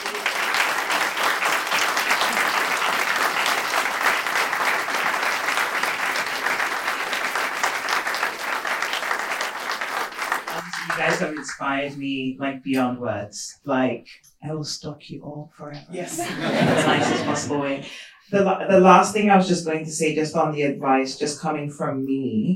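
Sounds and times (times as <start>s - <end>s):
audience applause: 0.0s - 11.6s, 16.2s - 17.5s
speech: 11.2s - 22.5s
laughter: 15.9s - 17.9s.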